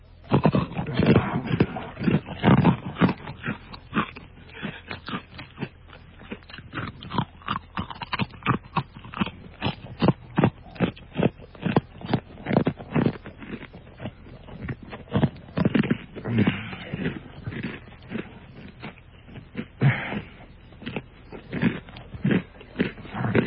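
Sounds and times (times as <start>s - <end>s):
chewing iwaokoshi hard puffed-rice candy: 0.0s - 23.4s
iwaokoshi hard Osaka puffed-rice candy crunching: 0.2s - 23.4s
heavy breathing through the nose: 0.5s - 6.3s, 14.1s - 21.2s.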